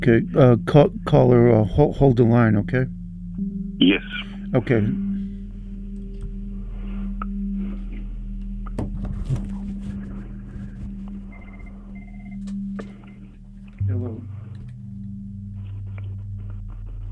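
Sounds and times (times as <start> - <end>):
speech: 0.0 - 3.0, 3.8 - 5.1
low steady hum: 0.0 - 17.0
telephone ringing with an incoming call: 11.3 - 13.2.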